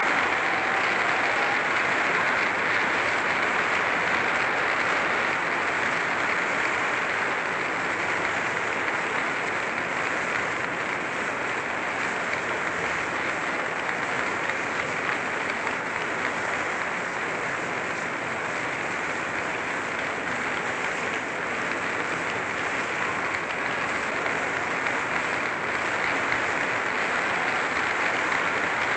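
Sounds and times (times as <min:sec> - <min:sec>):
applause: 0:00.0 - 0:28.9.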